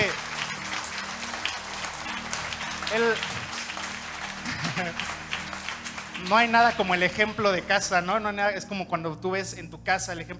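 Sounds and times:
audience applause: 0.0s - 7.6s
speech: 2.9s - 3.4s, 4.8s - 5.2s, 6.2s - 10.3s
laughter: 4.4s - 5.2s.

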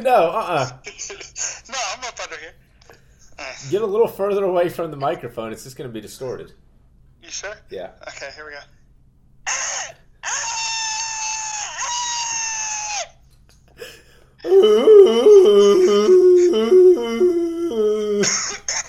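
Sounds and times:
speech: 0.0s - 1.1s, 3.6s - 6.6s, 7.3s - 8.8s, 14.4s - 15.2s
person imitating a panicked scream after being woken: 9.5s - 13.1s, 14.4s - 18.6s.

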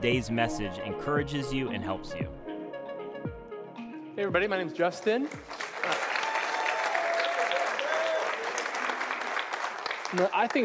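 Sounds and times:
speech: 0.0s - 2.5s, 4.2s - 6.1s, 10.1s - 10.6s
audience applauding: 5.3s - 10.6s.

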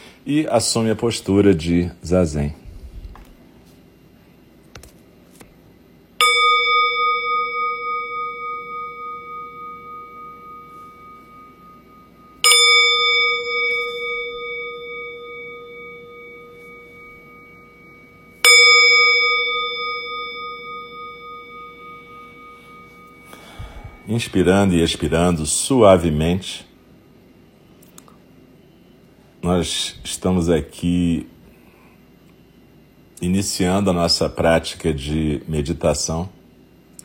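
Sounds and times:
speech: 0.2s - 2.6s, 24.2s - 26.7s, 29.5s - 31.3s, 33.2s - 36.4s
meditation bell ringing: 6.2s - 25.4s.

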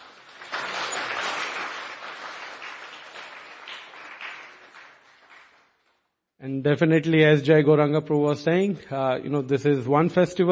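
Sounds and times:
audience applause: 0.0s - 5.8s
speech: 6.4s - 10.5s.

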